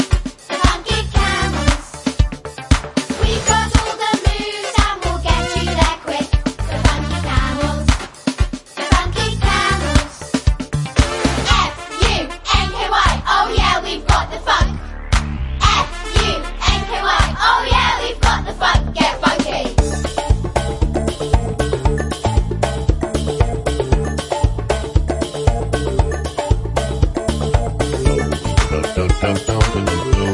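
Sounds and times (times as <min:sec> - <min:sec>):
funk music with vocals: 0:00.0 - 0:30.3.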